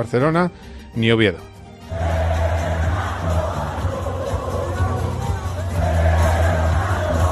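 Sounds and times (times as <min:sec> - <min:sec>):
speech: 0:00.0 - 0:02.1
large crowd roaring and cheering at a racetrack: 0:01.9 - 0:07.3.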